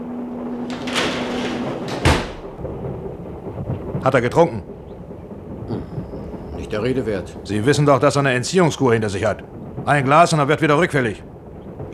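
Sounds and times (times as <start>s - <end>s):
door closing: 0.5s - 2.7s
speech: 4.0s - 4.8s, 6.7s - 11.3s.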